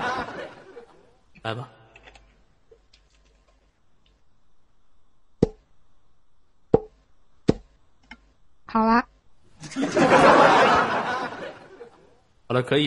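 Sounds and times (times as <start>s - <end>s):
laughter: 0.0s - 1.2s, 9.6s - 12.2s
speech: 1.4s - 1.8s, 8.7s - 9.0s, 12.5s - 12.8s
bottle knocking on a head: 6.7s - 6.9s, 7.5s - 7.7s.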